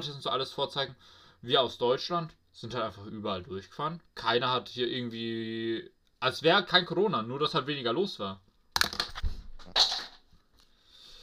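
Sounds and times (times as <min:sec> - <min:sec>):
speech: 0:00.0 - 0:09.0
pen dropping and clattering: 0:08.8 - 0:10.2.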